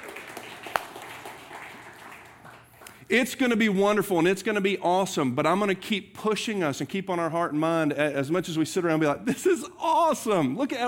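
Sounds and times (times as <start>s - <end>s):
audience clapping: 0.0s - 3.3s
speech: 3.1s - 10.8s.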